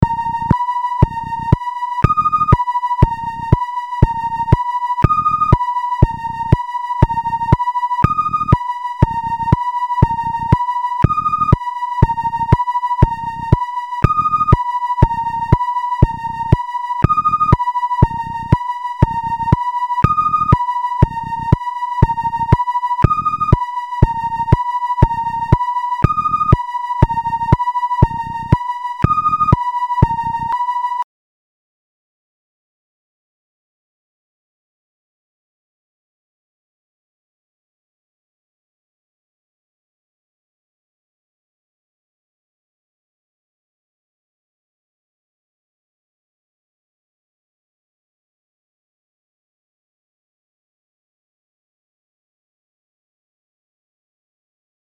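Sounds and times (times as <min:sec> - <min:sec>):
sine wave tone: 0:00.0 - 0:31.1.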